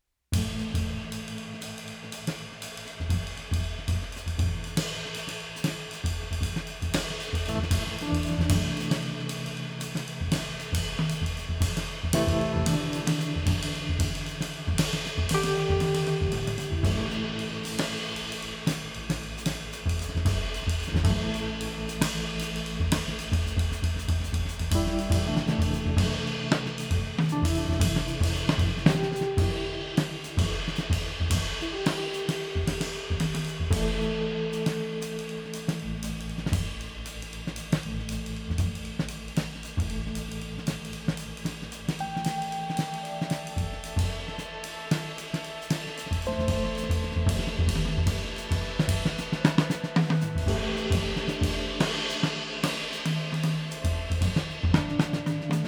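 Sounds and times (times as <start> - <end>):
jazz improvisation underscore: 0.4 - 55.6.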